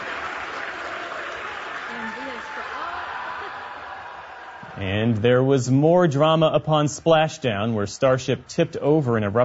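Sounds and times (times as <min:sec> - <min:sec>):
SpaceX employees in mission control cheering and applauding a Starship landing: 0:00.0 - 0:05.5
speech: 0:04.8 - 0:09.4.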